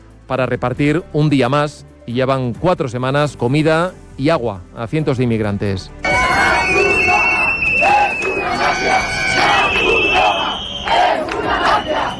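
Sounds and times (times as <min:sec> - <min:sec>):
speech: 0:00.3 - 0:06.2
crowd of protesters shouting slogans: 0:06.1 - 0:12.1.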